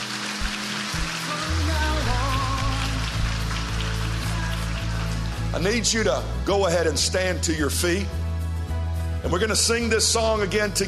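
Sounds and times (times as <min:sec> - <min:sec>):
audience clapping hands: 0:00.0 - 0:06.2
speech: 0:05.6 - 0:08.2, 0:09.2 - 0:10.8.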